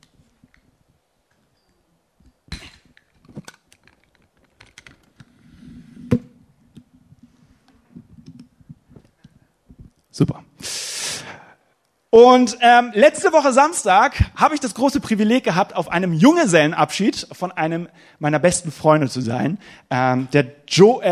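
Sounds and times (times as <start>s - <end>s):
microphone being adjusted and lowered: 5.2s - 10.0s
speech: 10.2s - 10.8s, 12.1s - 21.1s.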